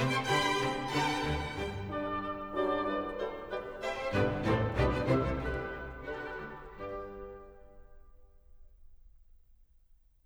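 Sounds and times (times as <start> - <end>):
orchestra playing a ballet overture: 0.0 - 7.7.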